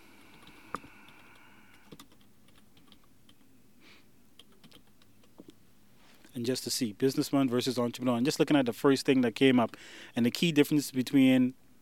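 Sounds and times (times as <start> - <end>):
typing on a computer keyboard for a web search: 0.3 - 3.4, 4.4 - 5.5
speech: 6.4 - 11.6.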